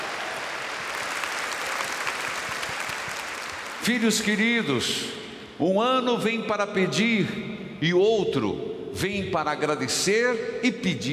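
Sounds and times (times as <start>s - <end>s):
applause: 0.0s - 4.4s
speech: 3.9s - 11.1s.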